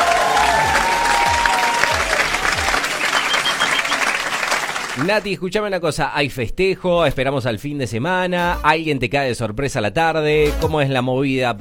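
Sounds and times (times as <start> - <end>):
applause: 0.0 - 5.3
speech: 5.0 - 11.5.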